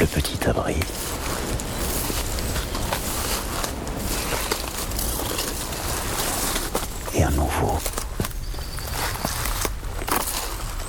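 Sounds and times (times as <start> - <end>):
footsteps through undergrowth on dry dead leaves: 0.0 - 10.8
speech: 0.1 - 1.4.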